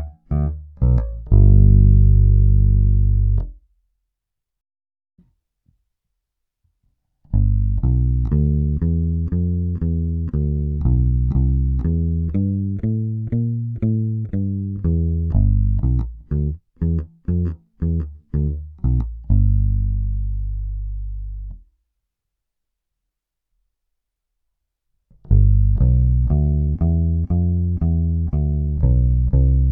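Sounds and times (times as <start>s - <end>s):
Ibanez SRX 700 clean tone, humbuckers, worn D'Addario EXL-165 nickel roundwound strings: 0.0s - 3.6s, 7.3s - 21.7s, 25.2s - 29.7s.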